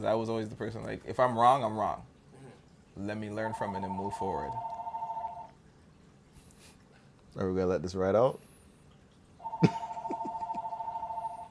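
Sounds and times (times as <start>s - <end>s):
speech: 0.0s - 2.1s, 3.0s - 4.7s, 7.4s - 8.5s, 9.6s - 9.8s
house phone ringing with a steady electronic tone: 3.4s - 5.6s, 9.4s - 11.4s.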